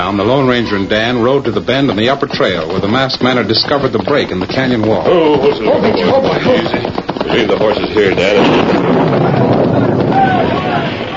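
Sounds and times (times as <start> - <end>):
speech: 0.1 - 9.7
blast bringing down a big rock overhang at the top of a gorge: 6.3 - 11.1.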